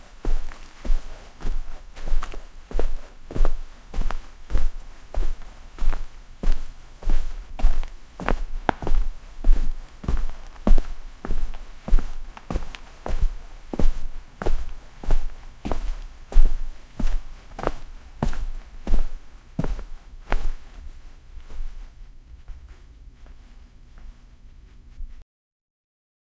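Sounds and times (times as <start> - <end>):
footsteps on an old dirty carpet: 0.0 - 25.2.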